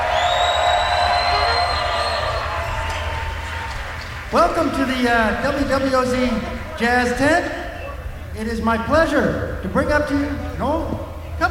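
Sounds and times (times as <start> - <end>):
crowd cheering in the WWOZ Jazz Tent: 0.0 - 8.4
speech: 4.3 - 7.6, 8.4 - 11.4.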